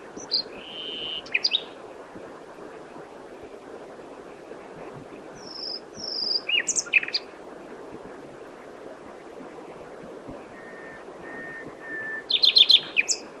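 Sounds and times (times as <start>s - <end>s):
common nightingale Luscinia megarhynchos singing: 0.2s - 1.7s, 5.4s - 7.3s, 10.5s - 13.3s.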